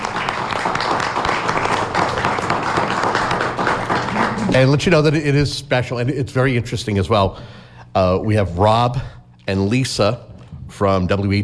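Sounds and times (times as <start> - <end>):
audience applause: 0.0 - 5.0
speech: 4.6 - 11.4.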